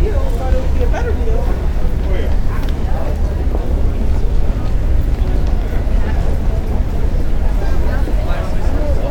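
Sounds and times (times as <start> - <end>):
subway station ambience: 0.0 - 9.0.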